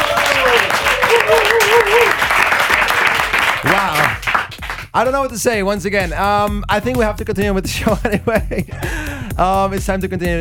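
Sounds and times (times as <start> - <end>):
room audience applause: 0.0 - 4.9
speech: 5.0 - 10.4.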